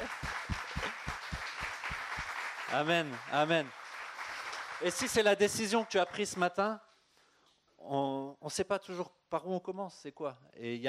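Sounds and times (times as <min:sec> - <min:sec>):
church congregation applauding: 0:00.0 - 0:06.6
speech: 0:02.7 - 0:03.8, 0:04.8 - 0:06.8, 0:07.8 - 0:10.8.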